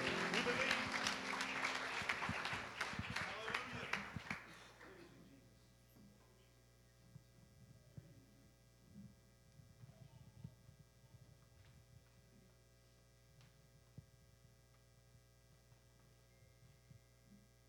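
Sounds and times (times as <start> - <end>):
audience clapping in praise: 0.0 - 4.7.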